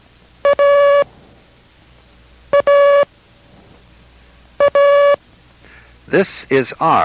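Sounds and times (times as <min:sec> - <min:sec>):
Morse code letter A beeps: 0:00.4 - 0:01.1, 0:02.5 - 0:03.1, 0:04.6 - 0:05.2
speech: 0:06.1 - 0:07.0.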